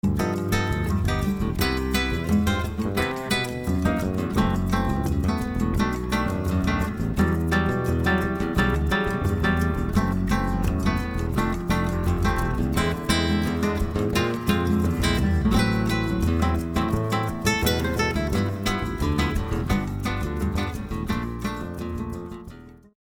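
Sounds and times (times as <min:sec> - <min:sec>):
music: 0:00.0 - 0:23.0.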